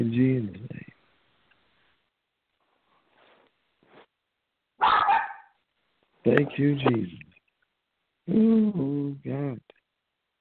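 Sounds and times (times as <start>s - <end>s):
speech: 0.0s - 0.8s, 6.2s - 7.2s, 8.3s - 9.8s
dog barking: 4.8s - 5.6s.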